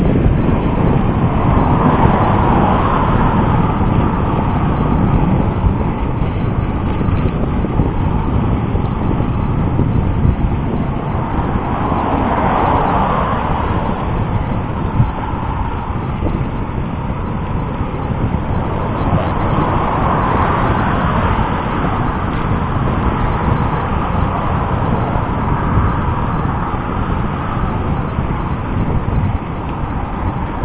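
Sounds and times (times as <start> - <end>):
passing traffic: 0.0 - 30.6
road roar: 0.0 - 30.6
wind noise riding a bike downhill on Barbur: 0.0 - 30.6.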